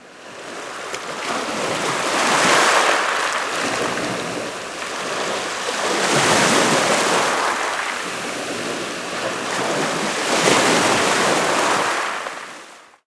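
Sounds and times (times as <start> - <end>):
sea water: 0.0 - 13.0.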